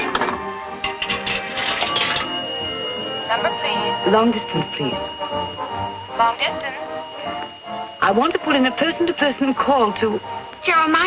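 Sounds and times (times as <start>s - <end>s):
steady mechanical hum: 0.0s - 11.0s
coin inserted into payphone slot: 0.8s - 2.3s
speech: 4.0s - 11.0s.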